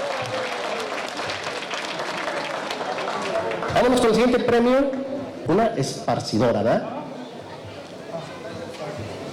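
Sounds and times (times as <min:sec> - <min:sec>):
audience applause: 0:00.0 - 0:04.1
speech: 0:03.8 - 0:07.0.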